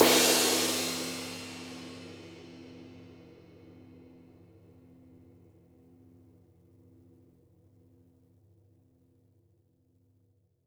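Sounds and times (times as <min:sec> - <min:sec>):
flat ride cymbal: 0:00.0 - 0:02.4.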